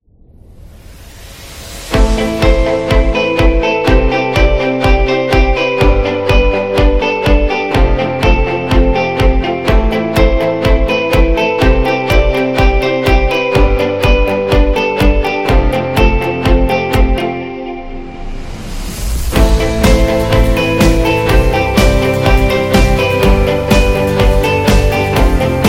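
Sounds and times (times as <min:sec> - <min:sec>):
motivational corporate music: 0:01.9 - 0:25.6.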